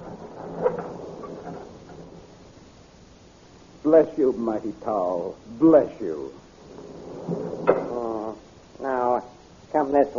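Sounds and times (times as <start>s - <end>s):
gate being opened: 0.0s - 2.8s, 6.6s - 8.2s
speech: 3.8s - 6.4s, 9.9s - 10.1s.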